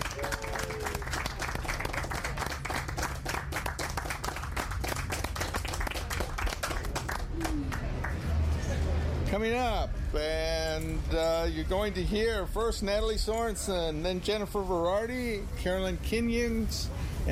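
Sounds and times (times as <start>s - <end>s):
audience clapping at a live event: 0.0s - 8.6s
speech: 9.4s - 17.2s.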